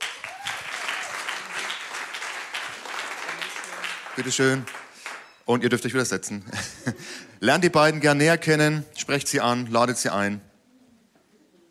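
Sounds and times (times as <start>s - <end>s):
audience applause: 0.0s - 5.4s
speech: 4.2s - 4.8s, 5.5s - 10.5s
laughter: 6.4s - 7.3s.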